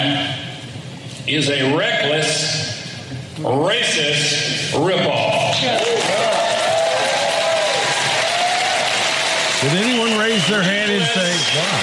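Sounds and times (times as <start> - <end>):
speech: 1.3 - 2.6, 3.4 - 6.0, 9.6 - 11.8
audience applause: 5.5 - 11.8.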